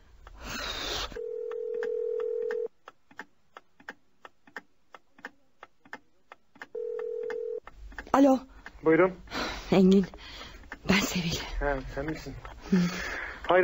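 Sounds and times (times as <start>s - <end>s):
telephone ringing tone while waiting: 1.2s - 2.7s, 6.8s - 7.6s
speech: 8.2s - 13.6s.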